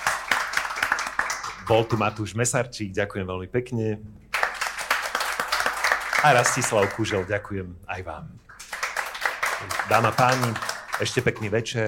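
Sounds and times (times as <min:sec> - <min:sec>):
audience applause: 0:00.0 - 0:02.2, 0:04.3 - 0:07.3, 0:08.5 - 0:11.8
speech: 0:01.7 - 0:04.3, 0:06.2 - 0:08.5, 0:09.6 - 0:11.8.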